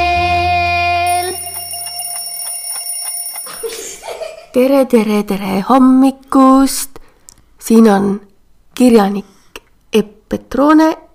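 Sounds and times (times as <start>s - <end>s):
clock ticking: 1.1s - 3.8s
speech: 4.5s - 7.0s, 7.6s - 9.3s, 9.9s - 11.0s.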